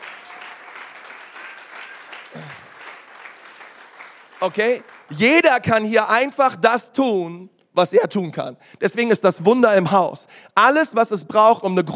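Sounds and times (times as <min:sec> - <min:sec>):
audience applauding: 0:00.0 - 0:05.2
speech: 0:04.4 - 0:11.9.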